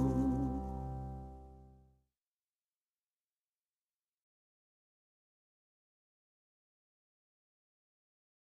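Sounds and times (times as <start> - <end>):
singalong song: 0.0 - 1.4.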